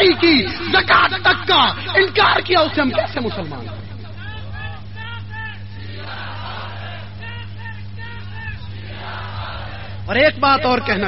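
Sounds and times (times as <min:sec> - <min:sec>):
steady low hum: 0:00.0 - 0:11.0
speech: 0:00.1 - 0:03.8, 0:10.1 - 0:11.0
crowd chanting a slogan during a speech: 0:05.8 - 0:07.3, 0:08.2 - 0:10.1.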